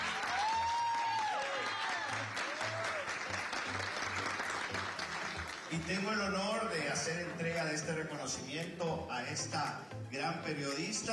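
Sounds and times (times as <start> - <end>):
audience clapping: 0.0 - 7.7
speech: 5.7 - 11.1.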